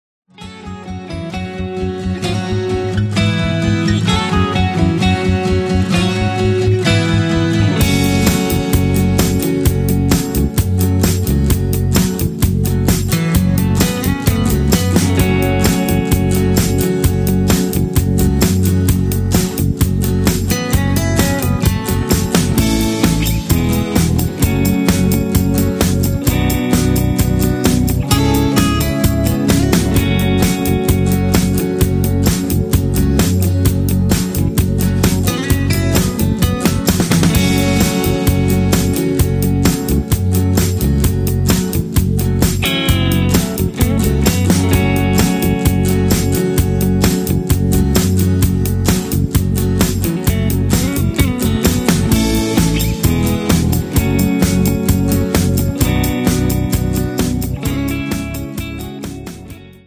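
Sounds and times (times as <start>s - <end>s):
instrumental music without leads: 0.3s - 59.8s.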